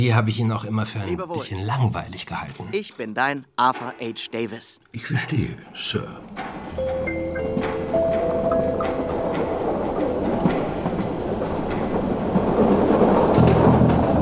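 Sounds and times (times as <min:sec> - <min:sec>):
speech: 0:00.0 - 0:07.2
train bound for Flensburg running on rails: 0:05.4 - 0:14.2.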